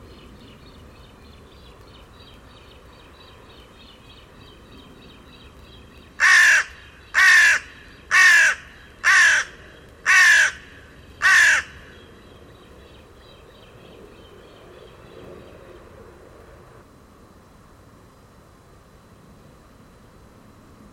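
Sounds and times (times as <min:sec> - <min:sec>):
bird giving harsh crow-like caws: 0:06.2 - 0:12.0.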